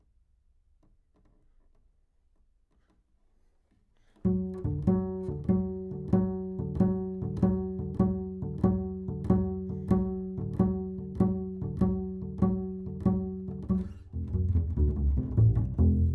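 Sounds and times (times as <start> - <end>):
bass: 4.2 - 16.1.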